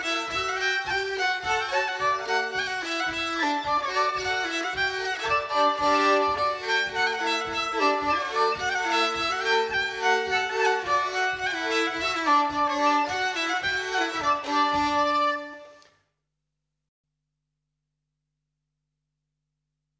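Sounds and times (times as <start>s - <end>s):
polka music: 0.0s - 15.9s.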